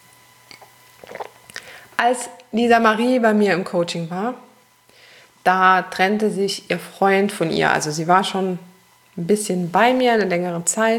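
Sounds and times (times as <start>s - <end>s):
person sipping a drink: 0.5s - 1.9s
speech: 2.0s - 4.5s, 5.5s - 10.9s.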